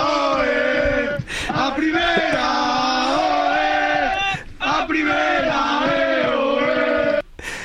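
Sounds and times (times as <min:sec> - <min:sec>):
team chanting and shouting celebrating promotion: 0:00.0 - 0:07.3.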